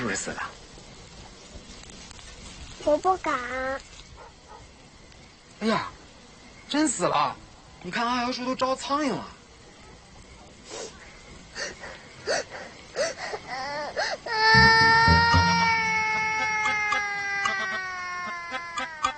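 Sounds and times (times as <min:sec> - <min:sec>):
speech: 0:00.1 - 0:00.6, 0:02.8 - 0:03.9, 0:05.6 - 0:06.0, 0:06.7 - 0:09.4
child crying: 0:13.0 - 0:19.1.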